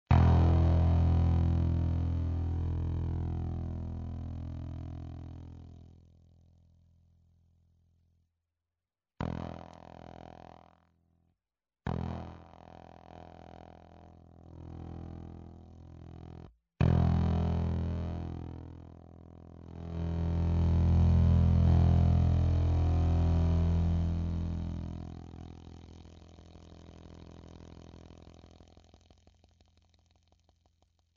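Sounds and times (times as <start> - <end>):
beta bass output distortion: 0.1 - 6.0, 11.9 - 30.6.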